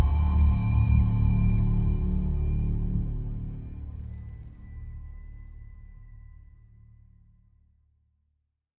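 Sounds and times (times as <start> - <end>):
dark tense scary music: 0.0 - 6.2.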